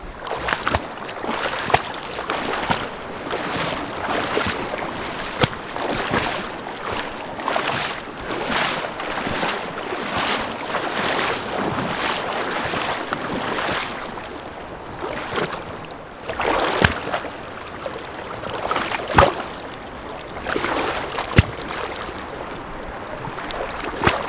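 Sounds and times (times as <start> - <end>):
footsteps in water: 0.0 - 24.2.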